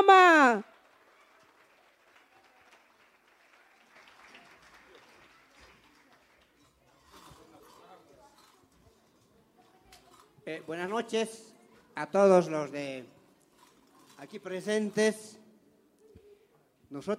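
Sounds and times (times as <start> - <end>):
speech: 0.0 - 0.7, 10.5 - 13.2, 14.2 - 15.4, 16.9 - 17.1
audience applause: 0.0 - 7.3.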